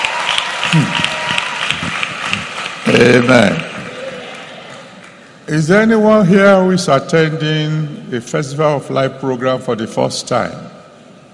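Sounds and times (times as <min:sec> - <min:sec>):
audience applause: 0:00.0 - 0:05.1
speech: 0:00.7 - 0:01.1, 0:02.9 - 0:03.7, 0:05.5 - 0:10.8.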